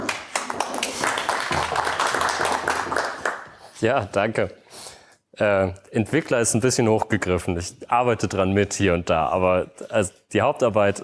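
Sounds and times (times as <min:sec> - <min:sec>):
applause: 0:00.0 - 0:03.8
speech: 0:03.8 - 0:04.6, 0:05.4 - 0:11.0.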